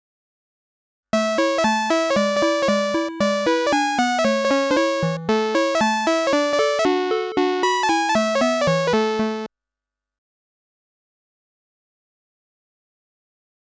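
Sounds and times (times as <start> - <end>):
high score game music: 1.2 - 9.5.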